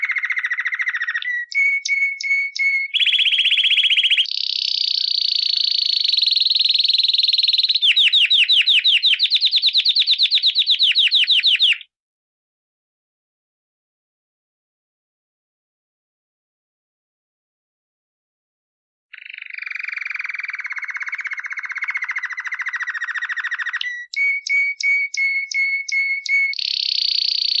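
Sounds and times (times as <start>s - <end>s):
canary song of buzzy trills and whistled notes: 0.0s - 11.9s, 19.1s - 27.5s.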